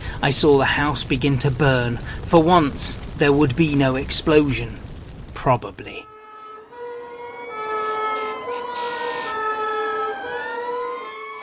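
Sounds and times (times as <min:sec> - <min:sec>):
fire engine rumble: 0:00.0 - 0:06.0
speech: 0:00.2 - 0:06.1
fire engine siren wailing: 0:06.1 - 0:11.4.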